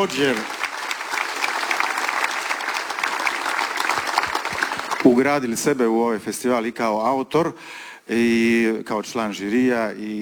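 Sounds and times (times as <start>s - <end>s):
speech: 0.0s - 0.6s, 5.0s - 10.2s
audience applause at a festival: 0.0s - 5.2s.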